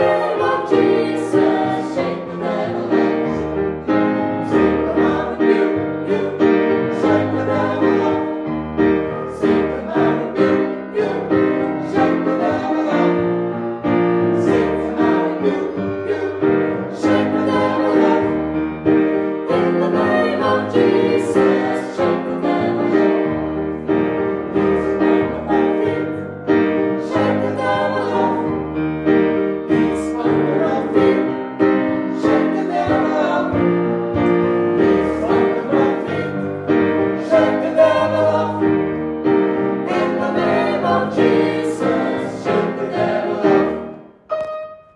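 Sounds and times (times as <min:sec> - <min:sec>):
gospel choir with all voices singing: 0:00.0 - 0:44.8.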